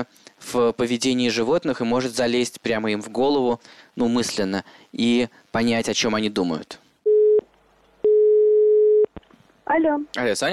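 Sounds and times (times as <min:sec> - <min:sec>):
speech: 0:00.0 - 0:06.8, 0:09.7 - 0:10.5
ringback tone of an outgoing telephone call: 0:07.1 - 0:07.4, 0:08.0 - 0:09.1.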